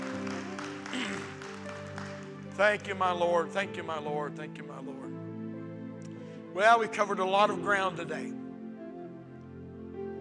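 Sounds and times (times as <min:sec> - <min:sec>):
audience hand clapping: 0:00.0 - 0:03.2
speech: 0:02.6 - 0:05.2, 0:06.6 - 0:08.4.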